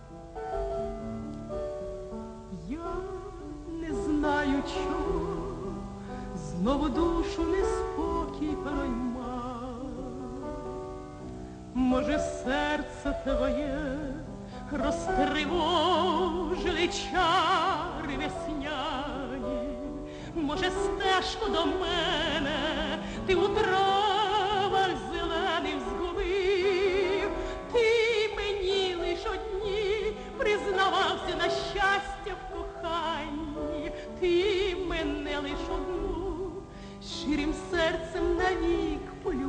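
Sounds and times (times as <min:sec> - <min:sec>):
Ukrainian serenade song: 0:00.0 - 0:39.4.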